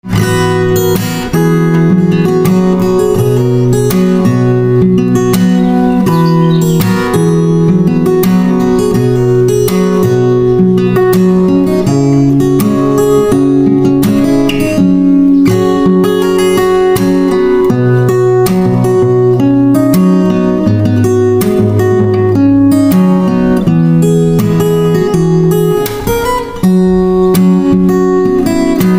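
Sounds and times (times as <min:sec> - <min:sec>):
guitar: 0:00.0 - 0:28.9.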